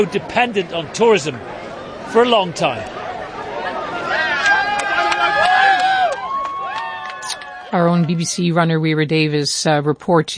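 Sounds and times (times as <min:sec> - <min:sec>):
speech: 0:00.0 - 0:03.0, 0:07.7 - 0:10.3
crowd of visitors babbling at a race finish line in Manger Square, Bethlehem: 0:00.0 - 0:10.3
people shouting and calling at a race finish line in Manger Square, Bethlehem: 0:02.9 - 0:07.8.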